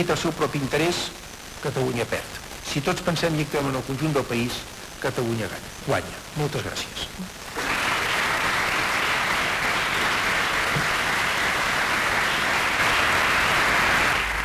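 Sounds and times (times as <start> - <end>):
speech: 0.0 - 7.4
applause from parliament benches: 7.5 - 14.4.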